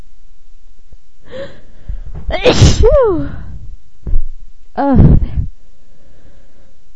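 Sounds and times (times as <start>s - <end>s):
woman's voice: 2.3s - 3.5s, 4.8s - 5.4s.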